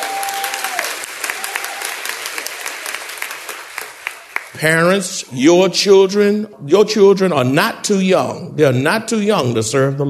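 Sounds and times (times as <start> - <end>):
audience applause: 0.0 - 5.0
speech: 4.6 - 10.0.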